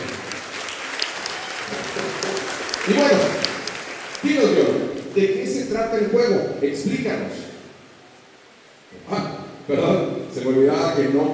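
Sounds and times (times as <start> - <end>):
audience applause: 0.0 - 5.3
speech: 4.2 - 7.5, 9.1 - 11.3.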